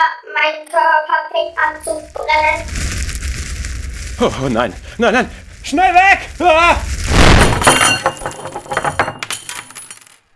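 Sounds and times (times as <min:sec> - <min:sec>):
speech: 0:00.1 - 0:03.0, 0:04.2 - 0:09.1
explosion sound effect: 0:02.0 - 0:08.6
clinking tinkling debris: 0:07.2 - 0:10.3.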